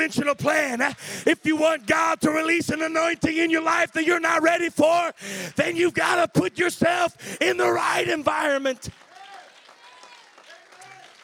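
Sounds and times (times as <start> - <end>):
audience hand clapping: 0.0 - 3.8, 7.7 - 11.2
speech: 0.0 - 9.0.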